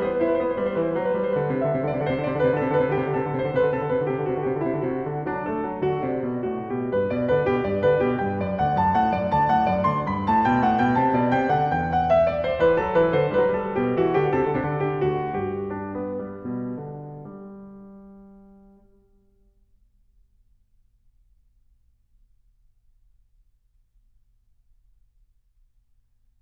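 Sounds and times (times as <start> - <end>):
classical invention in G major: 0.0 - 19.4.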